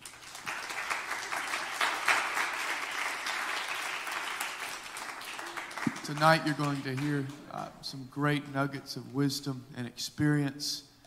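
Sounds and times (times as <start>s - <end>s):
church congregation applause at an evening ministry training gathering: 0.0s - 7.4s
speech: 6.1s - 10.9s.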